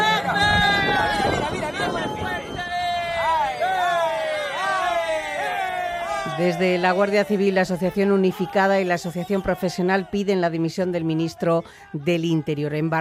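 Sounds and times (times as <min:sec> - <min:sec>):
onlookers cheering and whooping at passing boats: 0:00.0 - 0:10.3
crowd hubbub: 0:00.0 - 0:12.9
speech: 0:06.4 - 0:12.9.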